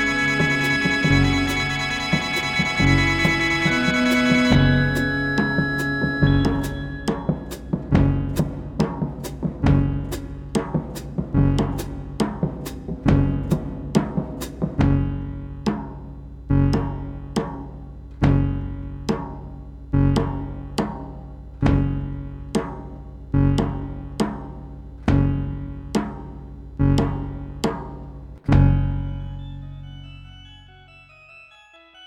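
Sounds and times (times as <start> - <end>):
stereo music on Farfisa Compact Duo Deluxe: 0.0 - 7.7, 28.8 - 32.0
drum kit: 0.0 - 28.9.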